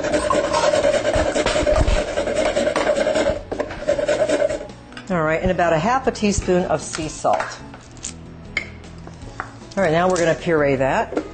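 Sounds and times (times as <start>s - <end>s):
fresh nutmeg being grated: 0.0s - 4.8s
speech: 5.1s - 7.7s, 9.8s - 11.2s.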